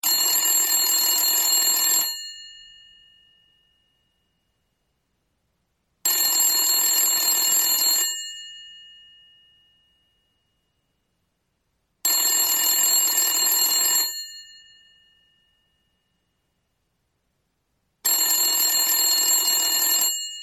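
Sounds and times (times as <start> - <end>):
old phone: 0.0 - 4.2, 6.0 - 10.3, 12.0 - 16.2, 18.0 - 20.4.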